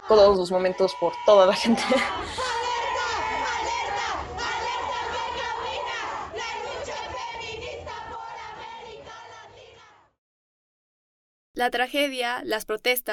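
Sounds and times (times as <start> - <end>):
protest march crowd chanting and shouting: 0.0 - 10.2
speech: 0.1 - 2.5, 11.6 - 13.1
laughter: 1.6 - 3.5.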